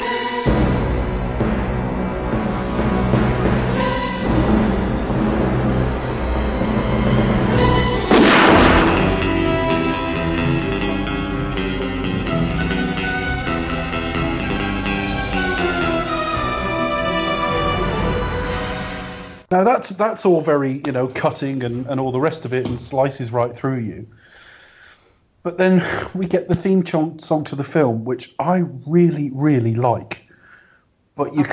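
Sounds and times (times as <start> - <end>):
orchestral opening music with brass-heavy chords: 0.0 - 19.5
speech: 19.6 - 24.4, 25.4 - 30.2, 31.2 - 31.5.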